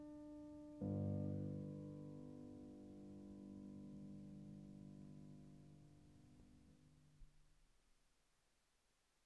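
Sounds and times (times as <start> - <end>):
piano piece in G minor: 0.0 - 7.0.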